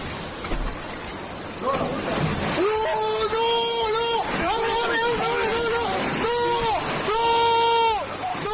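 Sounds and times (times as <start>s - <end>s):
floodwater crashing through a house wall: 0.0s - 8.5s
agitated voices shouting: 2.6s - 8.5s.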